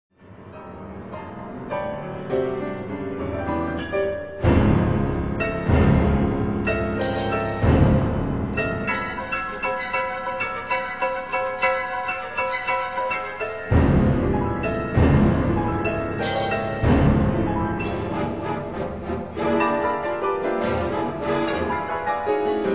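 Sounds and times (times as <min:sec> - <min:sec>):
piano concerto: 0:00.1 - 0:22.7.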